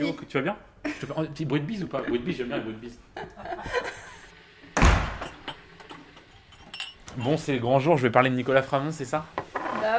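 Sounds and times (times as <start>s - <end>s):
speech: 0.0s - 4.0s, 7.2s - 9.9s
laughter: 1.9s - 4.3s
door opening thud: 4.8s - 5.4s.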